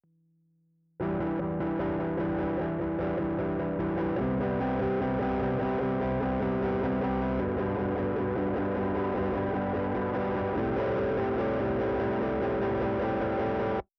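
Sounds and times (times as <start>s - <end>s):
guitar: 1.0s - 13.9s.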